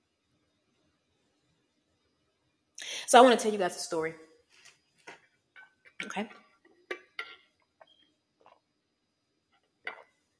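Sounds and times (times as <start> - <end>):
speech: 3.1 - 4.3, 6.2 - 6.4
person drinking water: 8.4 - 8.7.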